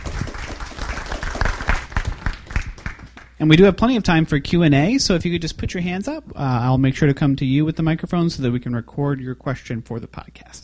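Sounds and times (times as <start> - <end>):
crowd applauding: 0.0 - 3.3
speech: 3.4 - 10.6.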